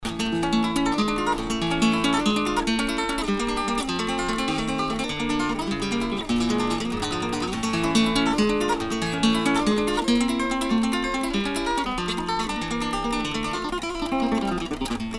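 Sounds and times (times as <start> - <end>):
bulerias flamenco music: 0.0 - 15.1.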